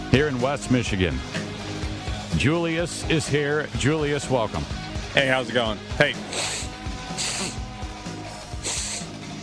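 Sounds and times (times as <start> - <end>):
speech: 0.1 - 1.4, 2.3 - 6.4
sniffing: 6.2 - 7.6, 8.6 - 9.2.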